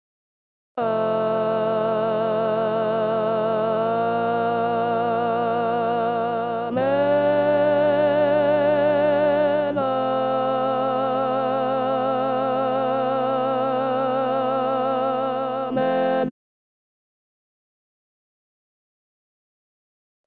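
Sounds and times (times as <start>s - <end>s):
contralto choir singing with guide voices: 0.8s - 16.3s.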